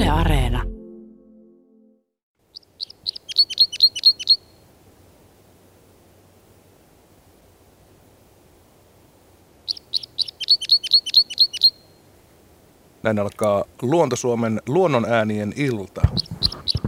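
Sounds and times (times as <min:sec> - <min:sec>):
speech: 0:00.1 - 0:00.7, 0:13.1 - 0:16.3
parrot crossbill calling: 0:02.5 - 0:04.5, 0:09.7 - 0:11.9, 0:15.9 - 0:16.8
steady low hiss: 0:02.5 - 0:16.1.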